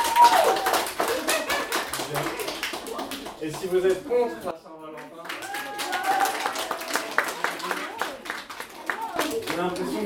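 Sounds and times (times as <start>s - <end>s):
audience applauding: 0.0s - 3.9s, 5.0s - 10.0s
speech: 3.5s - 4.5s, 9.6s - 10.0s.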